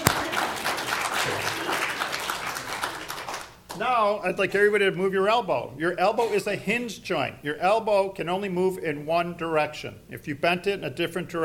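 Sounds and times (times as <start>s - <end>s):
audience applause: 0.0s - 3.6s
speech: 3.8s - 11.4s.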